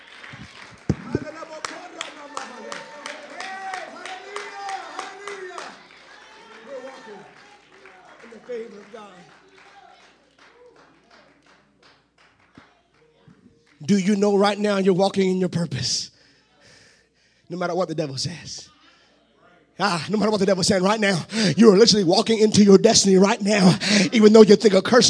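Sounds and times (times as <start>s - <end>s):
audience clapping hands: 0.0s - 14.6s
speech: 13.9s - 16.1s, 17.5s - 18.7s, 19.8s - 25.0s.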